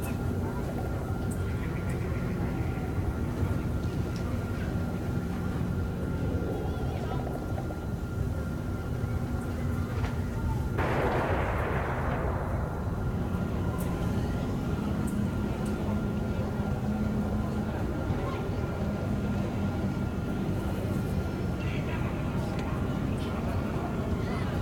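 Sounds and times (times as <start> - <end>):
market ambience: 0.0 - 24.5.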